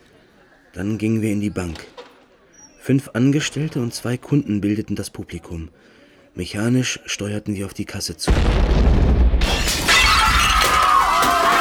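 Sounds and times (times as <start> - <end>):
speech: 0.7 - 2.0, 2.9 - 9.2
explosion: 8.3 - 11.0.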